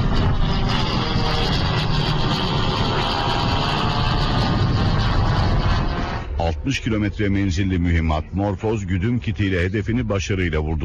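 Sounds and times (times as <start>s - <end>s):
Akıncı combat drone engine roaring on takeoff from Çorlu runway: 0.0s - 10.2s
speech: 6.6s - 10.8s.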